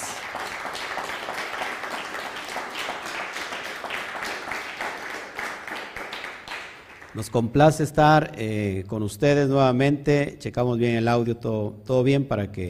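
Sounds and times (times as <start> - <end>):
applause: 0.0 - 7.6
speech: 7.2 - 12.6.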